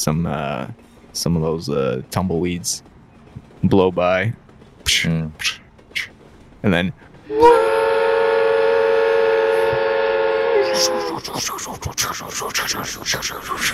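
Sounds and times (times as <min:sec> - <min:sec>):
speech: 0:00.0 - 0:02.9, 0:03.6 - 0:07.6, 0:10.8 - 0:13.7
human voice imitating a passing train whistle and chugging: 0:06.7 - 0:13.7.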